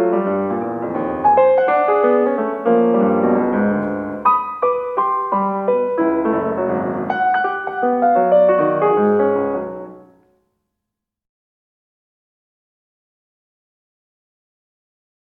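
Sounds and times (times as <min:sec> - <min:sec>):
piano piece: 0:00.0 - 0:10.4.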